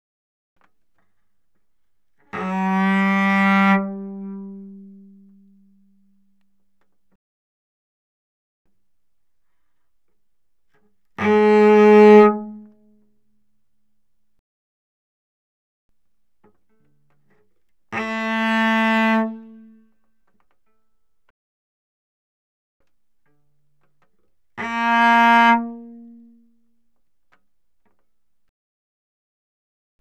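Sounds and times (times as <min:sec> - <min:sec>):
cello bowed fortissimo on the G string: 0:02.2 - 0:06.1, 0:11.2 - 0:12.9, 0:17.9 - 0:19.8, 0:24.5 - 0:26.6.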